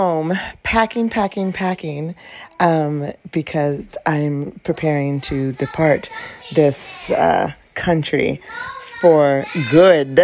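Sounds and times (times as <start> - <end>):
speech: 0.0 - 10.2
young children chattering and whining: 3.6 - 10.2.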